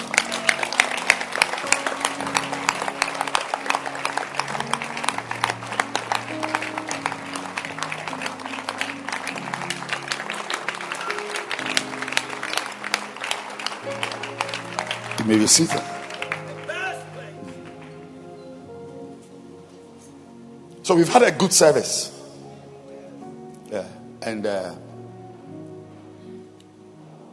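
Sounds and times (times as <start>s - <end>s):
audience clapping hands: 0.0s - 18.5s
speech: 15.3s - 15.9s, 20.9s - 22.1s, 24.3s - 24.9s.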